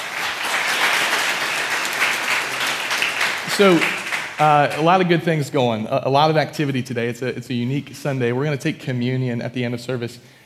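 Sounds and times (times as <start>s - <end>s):
audience applause: 0.0s - 5.1s
speech: 3.6s - 10.4s.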